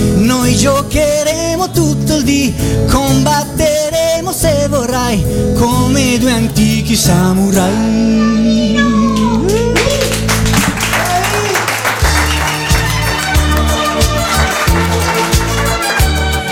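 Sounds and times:
music with deep bass line: 0.0 - 16.4
speech: 4.4 - 9.6
crowd applauding after a song: 9.2 - 16.4.

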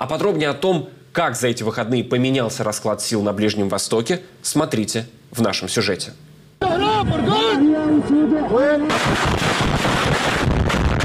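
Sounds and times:
speech: 0.0 - 9.4
powerful explosions in Aleppo war zone near university hospital: 8.9 - 11.0.

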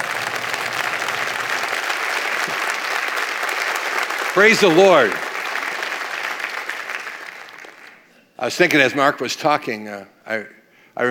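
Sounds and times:
church congregation applauding to welcome a pastor: 0.0 - 8.1
speech: 4.4 - 5.2, 8.4 - 11.0.

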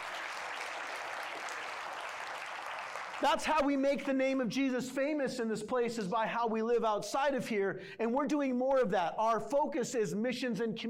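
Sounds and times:
audience clapping: 0.0 - 4.2
speech: 3.2 - 10.8.

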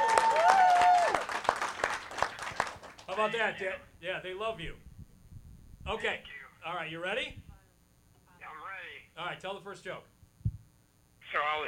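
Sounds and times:
audience applause: 0.0 - 3.3
speech: 3.2 - 4.9, 5.8 - 7.4, 9.2 - 10.1, 11.3 - 11.6.

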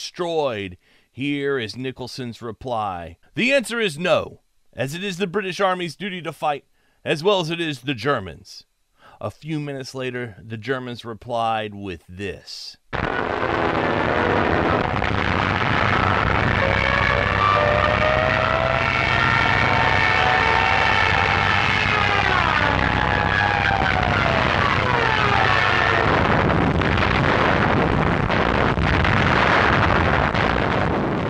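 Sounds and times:
speech: 0.0 - 15.2
screeching Stuka dive bombers: 13.0 - 31.2.

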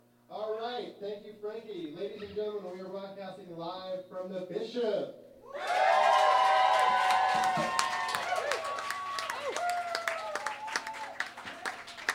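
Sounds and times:
speech: 0.8 - 6.0
whoops and shouts: 5.5 - 11.3
enthusiastic crowd cheering: 5.5 - 12.1
applause: 5.6 - 12.1.

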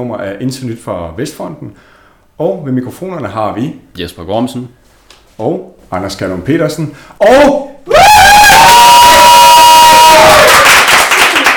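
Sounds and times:
speech: 0.0 - 4.8, 5.4 - 8.0
studio audience cheering and whooping at an anniversary show: 7.9 - 10.9.

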